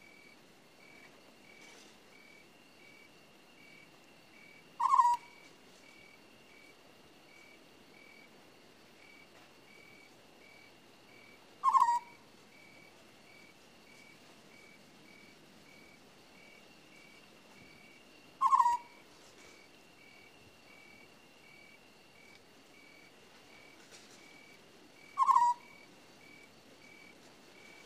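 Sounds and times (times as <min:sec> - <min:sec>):
owl screeching: 0:04.8 - 0:05.3, 0:11.6 - 0:12.2, 0:18.4 - 0:19.0, 0:25.2 - 0:25.8.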